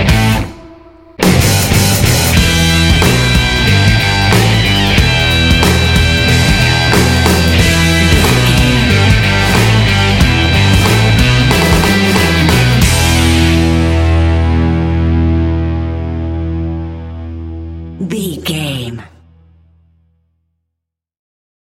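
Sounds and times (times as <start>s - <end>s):
powerful blues rock music: 0.0s - 18.0s
gritty vocal singing: 7.6s - 9.8s.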